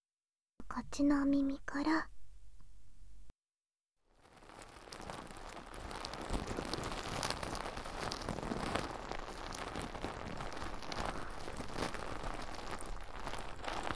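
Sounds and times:
speech: 0:00.7 - 0:02.2
soft foam being spread on ears: 0:04.2 - 0:13.9.

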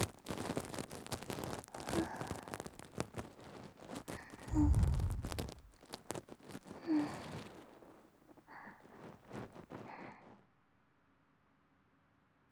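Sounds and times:
ear cleaning in the right ear: 0:00.0 - 0:08.0, 0:08.6 - 0:10.1.

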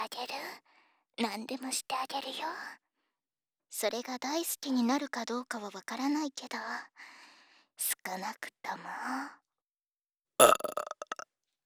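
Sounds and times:
speech: 0:01.2 - 0:02.8, 0:03.7 - 0:07.2, 0:07.8 - 0:09.4, 0:10.4 - 0:11.2
loud burp: 0:10.4 - 0:11.2.

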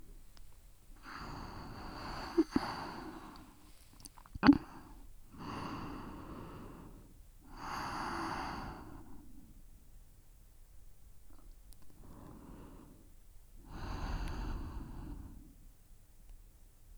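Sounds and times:
sleeping breath: 0:01.0 - 0:03.6, 0:04.6 - 0:09.5, 0:12.0 - 0:15.6.

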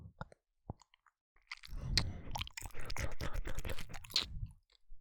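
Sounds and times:
ear licking: 0:01.5 - 0:04.3
wet sucking sounds during fellatio: 0:01.5 - 0:04.4
sex sounds: 0:01.6 - 0:04.3.

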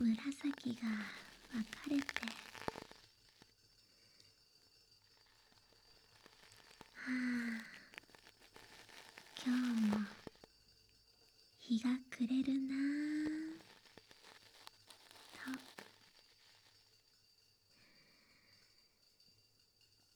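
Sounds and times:
ASMR ear cleaning on the left ear: 0:00.0 - 0:03.5, 0:05.0 - 0:10.5, 0:12.0 - 0:17.0.

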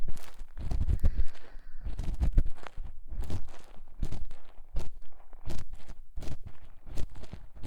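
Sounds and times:
ear cleaning sounds: 0:00.6 - 0:04.3.

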